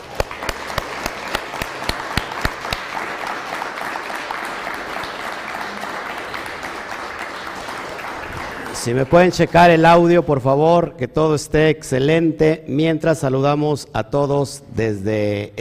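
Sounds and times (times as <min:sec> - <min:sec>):
audience applause: 0:00.0 - 0:10.0
speech: 0:08.8 - 0:15.6.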